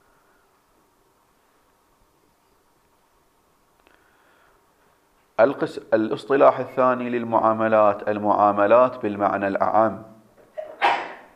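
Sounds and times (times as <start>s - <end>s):
speech: 5.4s - 10.1s
single sneeze: 10.6s - 11.3s.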